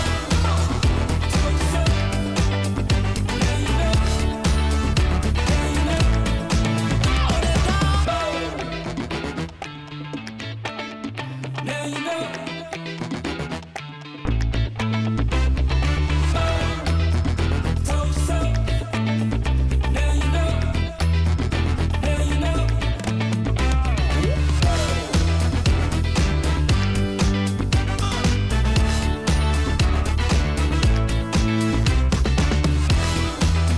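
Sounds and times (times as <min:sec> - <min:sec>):
energetic retro funk background music: 0:00.0 - 0:33.7.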